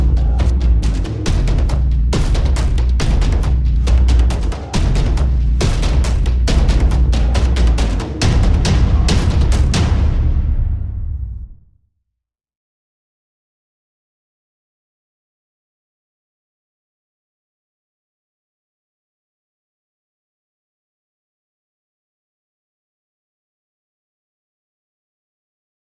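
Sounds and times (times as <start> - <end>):
drums: 0.0 - 11.6.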